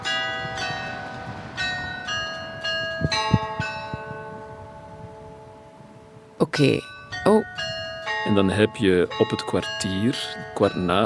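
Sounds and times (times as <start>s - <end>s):
church bells ringing hourly chime: 0.0s - 11.0s
low thuds: 0.4s - 4.6s
speech: 3.0s - 3.4s, 6.6s - 7.4s, 8.3s - 11.0s.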